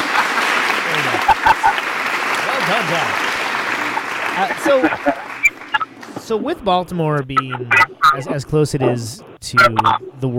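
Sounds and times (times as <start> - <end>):
laughter: 0.0 - 5.6, 7.4 - 10.0
person applauding with hand claps: 0.0 - 6.1
speech: 2.7 - 3.2, 4.4 - 5.3, 6.3 - 10.3.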